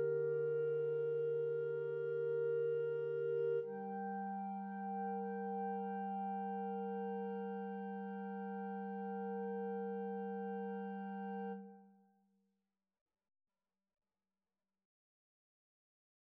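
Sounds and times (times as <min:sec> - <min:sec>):
clarinet trio playing: 0:00.0 - 0:11.5.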